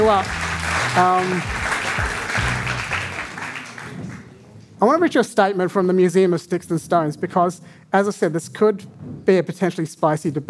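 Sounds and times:
audience applause: 0.0 - 4.3
speech: 0.1 - 0.4, 1.0 - 1.6, 4.8 - 10.4.

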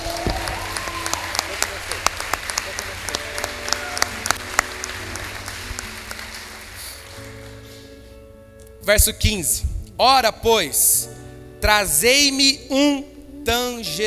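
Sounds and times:
audience applauding: 0.0 - 9.0
faint voices murmuring: 0.0 - 14.0
laughter: 0.0 - 14.0
speech: 8.9 - 14.0.

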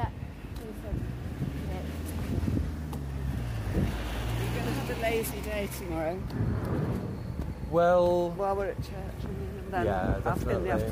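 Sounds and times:
wind buffeting on a ferry ride: 0.0 - 10.8
speech: 5.0 - 7.1, 7.7 - 10.8.

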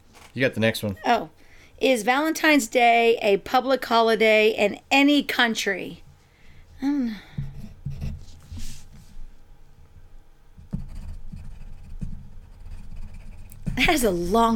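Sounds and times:
speech: 0.4 - 6.0, 13.8 - 14.5
pen scratching on paper writing a quiz answer: 10.8 - 14.1.

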